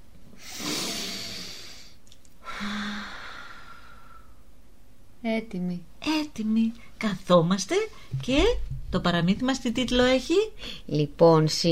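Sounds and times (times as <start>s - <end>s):
deep breathing in and out during a relaxation moment: 0.4s - 4.5s
speech: 5.2s - 11.7s.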